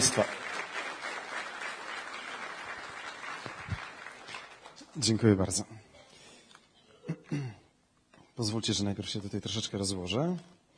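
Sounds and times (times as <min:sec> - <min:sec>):
speech: 0:00.0 - 0:00.4, 0:05.0 - 0:05.8, 0:08.4 - 0:10.6
audience applause: 0:00.0 - 0:05.0.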